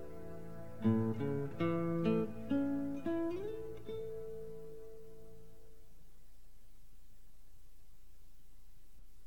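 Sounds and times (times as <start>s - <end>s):
guitar: 0.0s - 6.1s.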